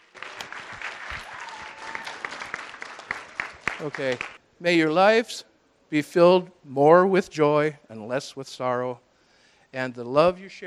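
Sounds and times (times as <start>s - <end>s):
wedding guests applauding: 0.0s - 4.4s
speech: 3.8s - 9.0s, 9.7s - 10.6s.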